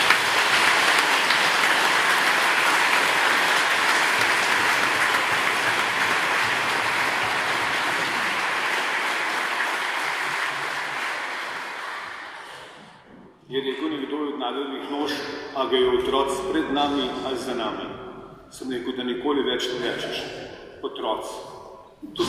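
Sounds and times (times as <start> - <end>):
large audience clapping: 0.0 - 12.8
speech: 14.5 - 17.8, 18.5 - 22.2.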